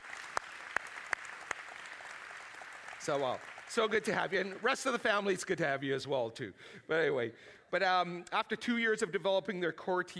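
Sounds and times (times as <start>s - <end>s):
church congregation applauding to welcome a family: 0.0s - 5.5s
speech: 3.0s - 10.1s.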